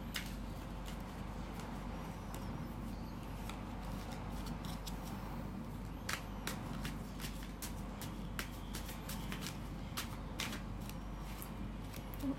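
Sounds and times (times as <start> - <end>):
cards popping out of the deck: 0.0 - 2.5, 5.9 - 12.3
playing cards being shuffled: 0.0 - 2.5, 3.3 - 12.3.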